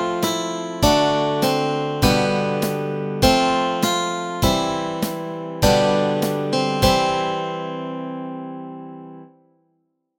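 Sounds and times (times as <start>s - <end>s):
guitar and ukulele playing melody and chords: 0.0s - 7.8s.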